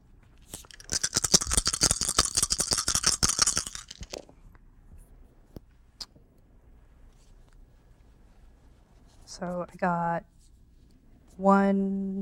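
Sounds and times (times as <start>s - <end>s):
dice rattling and clattering: 0.5s - 4.2s
speech: 9.4s - 10.3s, 11.4s - 12.1s.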